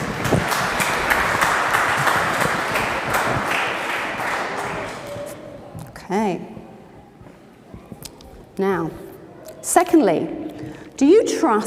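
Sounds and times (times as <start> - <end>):
crowd applauding: 0.0 - 5.6
speech: 9.8 - 10.4, 11.0 - 11.6.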